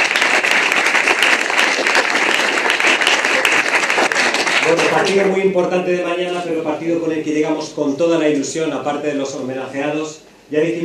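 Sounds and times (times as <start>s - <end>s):
applause: 0.0s - 5.3s
speech: 4.7s - 10.8s.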